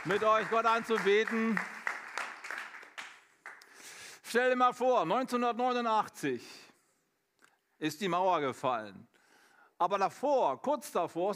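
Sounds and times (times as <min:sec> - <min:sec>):
speech: 0:00.0 - 0:01.8, 0:04.3 - 0:06.6, 0:07.8 - 0:09.1, 0:09.8 - 0:11.3
audience applause: 0:00.0 - 0:03.7.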